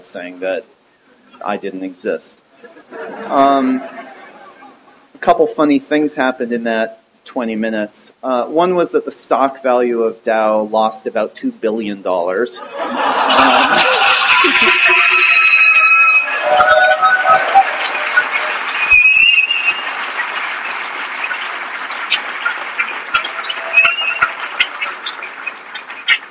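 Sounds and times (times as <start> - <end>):
speech: 0.0 - 4.0, 5.2 - 15.1
laughter: 2.6 - 5.1, 12.6 - 15.7
audience applause: 12.6 - 26.3.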